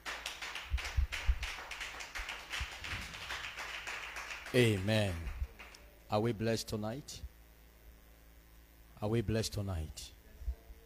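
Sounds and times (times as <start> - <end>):
audience clapping: 0.0 - 5.8
speech: 4.5 - 5.3, 6.1 - 7.3, 9.0 - 10.0.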